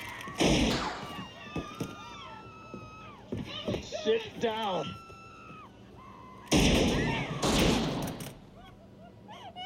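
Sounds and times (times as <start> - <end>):
gunshots from the 1973 film Magnum Force: 0.4 - 1.3, 6.5 - 8.5
people talking: 3.4 - 5.0.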